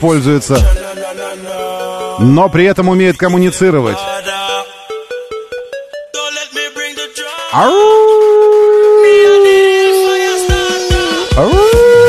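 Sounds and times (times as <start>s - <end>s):
speech: 0.0s - 0.8s, 2.2s - 4.2s, 7.6s - 8.1s, 11.4s - 12.0s
wolf howling: 7.6s - 12.0s.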